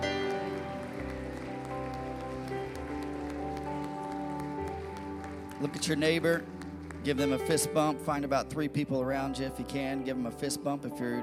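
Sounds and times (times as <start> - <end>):
audience clapping hands: 0.0 - 8.2
speech: 5.6 - 11.2.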